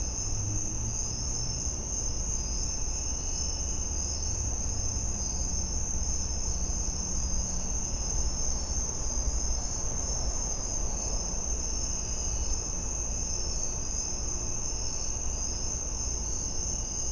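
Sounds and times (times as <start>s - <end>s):
chorus of crickets trilling in a suburban back yard: 0.0s - 17.1s.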